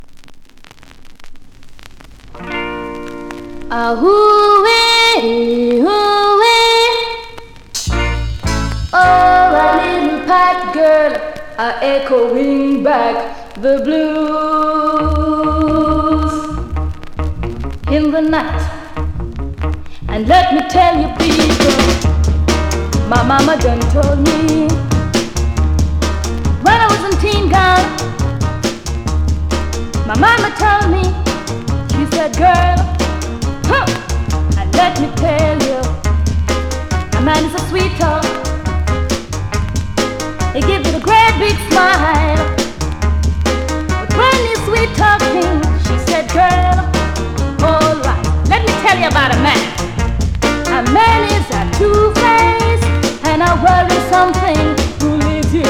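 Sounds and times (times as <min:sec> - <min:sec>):
Jamaica northern soul funk music: 0:02.1 - 0:11.4, 0:12.3 - 0:55.6.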